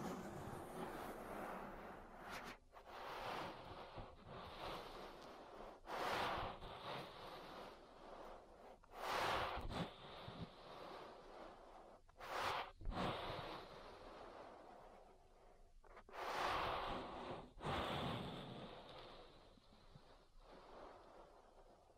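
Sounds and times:
ear massage rubbing and brushing strokes: 0.0 - 21.9.

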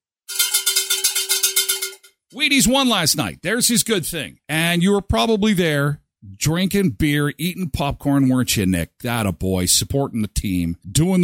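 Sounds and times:
bell ringing: 0.3 - 2.2
speech: 2.3 - 11.2.

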